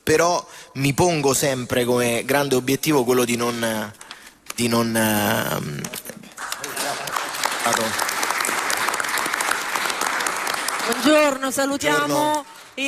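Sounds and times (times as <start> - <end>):
speech: 0.1 - 4.0, 4.6 - 6.2, 7.7 - 8.1, 10.9 - 12.8
applause for Senate President Ignazio La Russa: 6.3 - 12.8.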